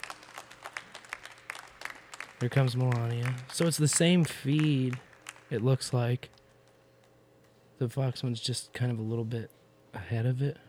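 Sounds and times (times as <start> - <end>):
debate audience applause on a live feed: 0.0 - 6.0
speech: 2.4 - 6.4, 7.8 - 10.6.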